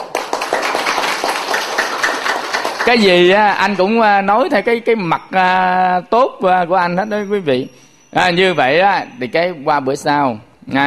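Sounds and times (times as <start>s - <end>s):
audience clapping in a steady rhythm during a comedic talk: 0.0s - 3.2s
speech: 2.9s - 10.8s.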